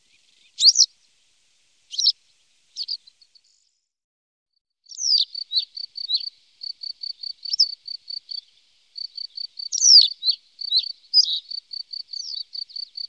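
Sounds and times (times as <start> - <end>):
birds: 0.0 - 3.9, 4.9 - 13.0.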